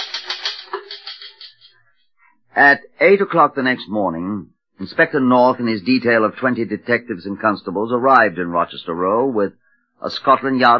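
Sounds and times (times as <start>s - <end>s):
typewriter typing: 0.0s - 1.7s
speech: 2.6s - 10.7s.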